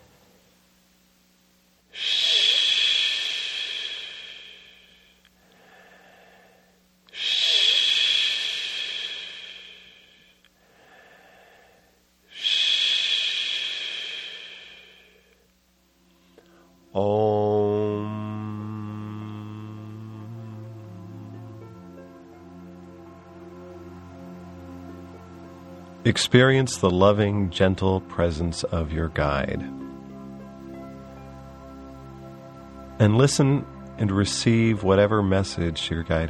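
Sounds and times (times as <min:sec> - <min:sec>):
sustained low hummed om: 0:01.9 - 0:15.4, 0:16.1 - 0:36.2
breathy ish exhalations during a guided meditation: 0:01.9 - 0:17.5
speech: 0:17.0 - 0:17.2, 0:26.1 - 0:29.8, 0:33.0 - 0:36.2.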